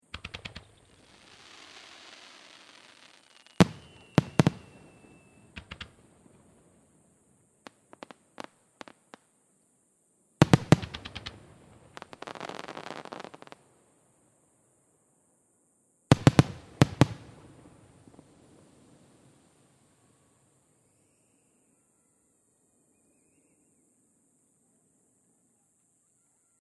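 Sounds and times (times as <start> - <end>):
fireworks rapid fire: 0.1 - 6.0, 10.4 - 13.4, 16.1 - 17.8.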